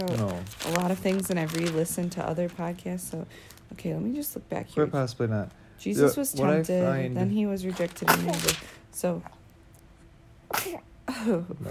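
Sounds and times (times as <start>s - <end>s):
speech: 0.0s - 9.4s, 10.6s - 11.6s
young girl sneezing: 10.5s - 10.9s.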